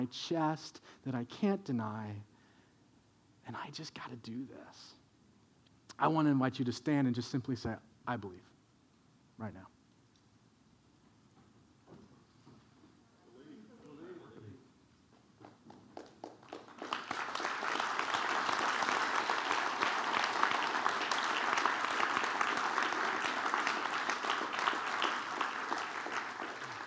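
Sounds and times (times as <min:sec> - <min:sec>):
speech: 0:00.0 - 0:02.3, 0:03.5 - 0:05.0, 0:06.0 - 0:08.5, 0:09.4 - 0:09.8
audience applause: 0:15.4 - 0:26.8.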